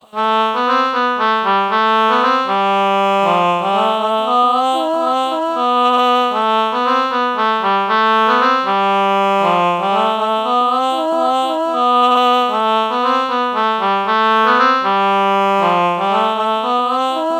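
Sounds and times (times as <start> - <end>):
morphing low oboe melody: 0.0 - 17.3.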